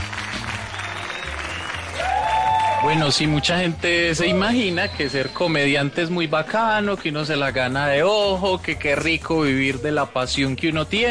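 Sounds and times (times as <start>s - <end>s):
audience applause welcoming a comedian onto a stand-up stage: 0.0s - 5.7s
speech: 2.8s - 11.0s.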